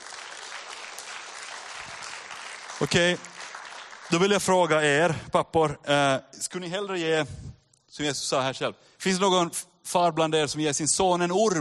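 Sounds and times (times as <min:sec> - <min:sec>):
audience clapping for fathers: 0:00.0 - 0:05.2
speech: 0:02.8 - 0:03.3, 0:04.1 - 0:11.5.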